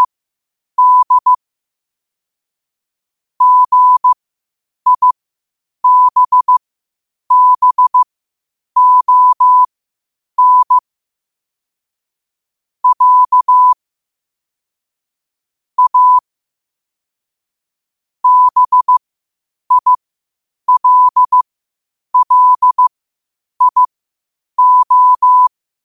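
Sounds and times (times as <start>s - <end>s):
morse code at 5 wpm: 0.8s - 1.4s, 3.4s - 4.2s, 4.9s - 5.2s, 5.8s - 6.6s, 7.3s - 8.1s, 8.8s - 9.7s, 10.4s - 10.8s, 12.8s - 13.8s, 15.8s - 16.2s, 18.2s - 19.0s, 19.7s - 20.0s, 20.7s - 21.4s, 22.2s - 22.9s, 23.6s - 23.9s, 24.6s - 25.5s.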